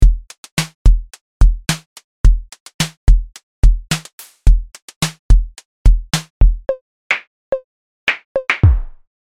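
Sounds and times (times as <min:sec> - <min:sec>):
drum: 0:00.0 - 0:06.3, 0:08.6 - 0:09.0.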